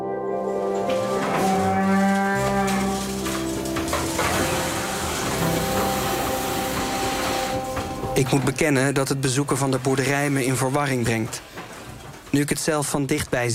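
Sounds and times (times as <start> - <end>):
cows mooing on a dairy farm: 0.8 - 8.2
speech: 8.2 - 11.6, 12.3 - 13.5.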